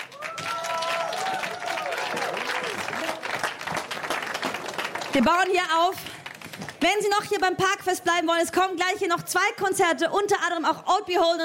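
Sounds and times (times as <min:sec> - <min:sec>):
cheers and voices: 0:00.0 - 0:03.2
audience applause: 0:00.0 - 0:05.5, 0:06.1 - 0:06.8
speech: 0:05.2 - 0:06.1, 0:06.8 - 0:11.4.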